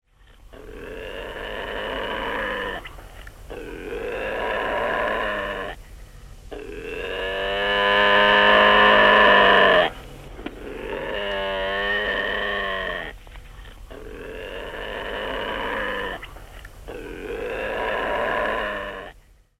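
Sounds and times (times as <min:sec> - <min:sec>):
animal voices: 0:00.1 - 0:19.2.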